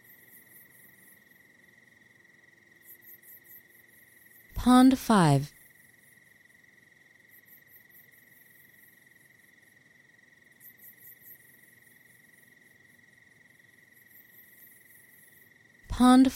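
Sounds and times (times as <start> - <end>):
cricket trill: 0.0 - 4.5, 5.6 - 15.8
gentle low noise: 4.6 - 5.5, 15.9 - 16.3
speech: 4.6 - 5.6, 16.1 - 16.3.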